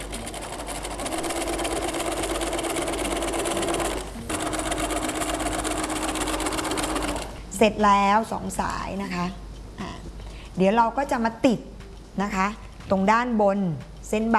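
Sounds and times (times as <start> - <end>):
sewing machine stitching a folded pressed fabric strip: 0.0 - 7.4
speech: 7.6 - 9.4, 10.6 - 14.3.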